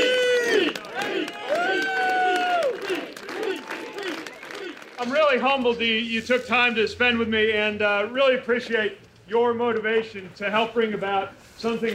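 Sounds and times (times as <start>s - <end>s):
voices whooping: 0.0s - 5.1s
outdoor crowd cheering at rally: 0.0s - 6.0s
speech: 5.3s - 11.9s.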